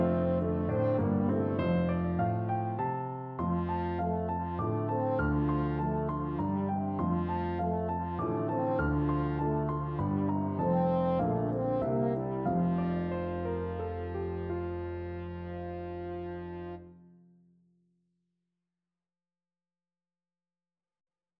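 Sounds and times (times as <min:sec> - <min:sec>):
horn trio playing: 0:00.0 - 0:02.2, 0:03.4 - 0:16.8.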